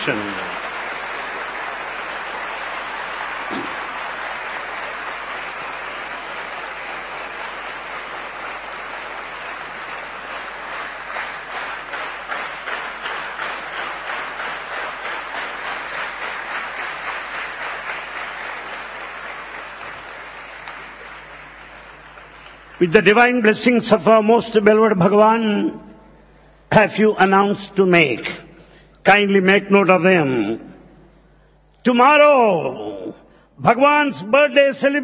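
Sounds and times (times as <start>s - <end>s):
speech: 0.0s - 0.6s, 22.8s - 25.9s, 26.7s - 28.4s, 29.0s - 30.7s, 31.8s - 35.0s
audience applause: 0.0s - 23.4s.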